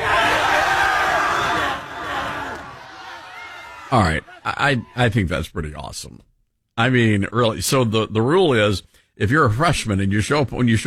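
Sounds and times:
crowd of screaming high school seniors: 0:00.0 - 0:05.2
speech: 0:03.9 - 0:10.8.

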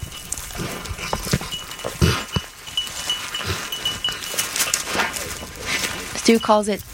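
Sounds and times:
dog sniffing and snorting: 0:00.2 - 0:06.4
speech: 0:06.3 - 0:06.9.

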